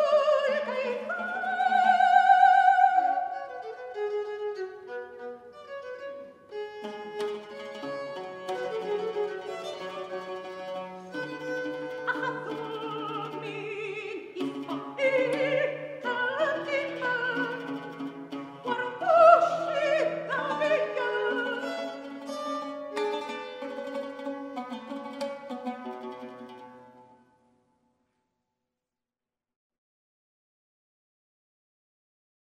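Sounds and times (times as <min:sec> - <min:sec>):
mezzo-soprano singing: 0:00.0 - 0:04.2, 0:11.2 - 0:23.8
oud: 0:00.0 - 0:27.5.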